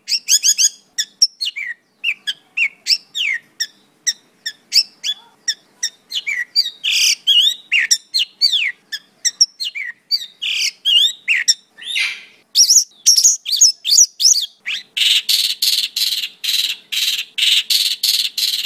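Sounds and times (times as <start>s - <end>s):
master bird chirping: 0.0s - 18.6s.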